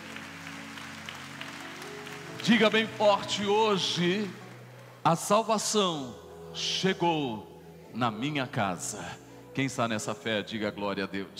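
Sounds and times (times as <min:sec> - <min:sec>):
audience applauding: 0:00.0 - 0:05.0
speech: 0:02.4 - 0:04.4, 0:05.0 - 0:11.3.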